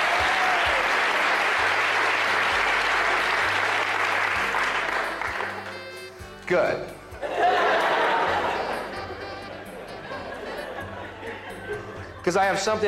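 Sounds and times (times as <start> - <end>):
audience round of applause: 0.0 - 5.9
speech: 6.5 - 7.0, 12.3 - 12.8
laughter: 7.2 - 12.8.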